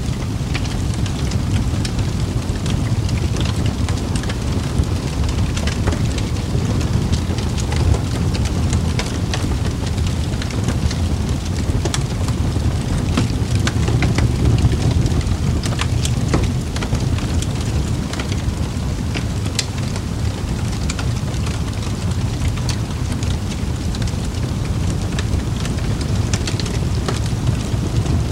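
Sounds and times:
firewood crackling in a fireplace: 0.0s - 28.3s
low roar of fireplace flames: 0.0s - 28.3s.

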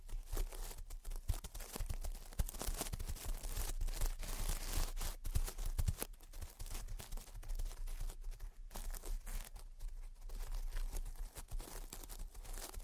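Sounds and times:
gentle tapping and scratching: 0.0s - 12.8s.

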